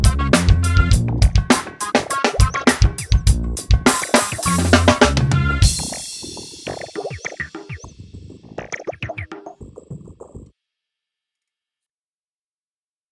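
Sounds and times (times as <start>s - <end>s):
funk drumming: 0.0s - 10.5s.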